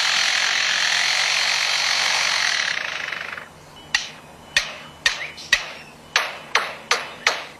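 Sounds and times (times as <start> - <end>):
lyrebird mimicking construction noises as broad buzzing: 0.0 - 6.0
lyrebird mimicking hammer knocks: 3.9 - 7.5.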